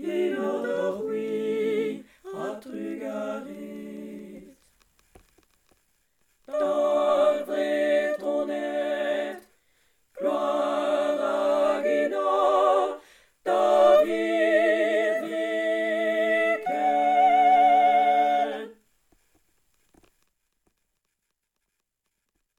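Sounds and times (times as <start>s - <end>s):
full ensemble playing a chorale: 0.0s - 4.5s, 6.5s - 9.4s, 10.2s - 18.8s.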